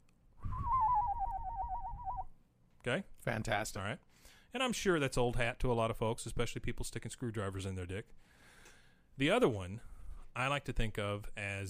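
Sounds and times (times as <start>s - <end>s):
person whistling: 0.4s - 2.3s
speech: 2.8s - 8.4s, 9.2s - 11.6s.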